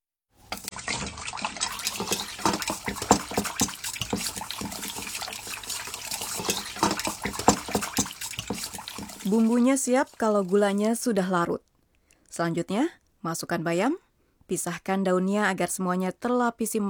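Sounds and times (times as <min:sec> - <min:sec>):
dashi broth seasoning liquid pouring: 0:00.4 - 0:11.1
speech: 0:09.3 - 0:11.7, 0:12.4 - 0:16.8.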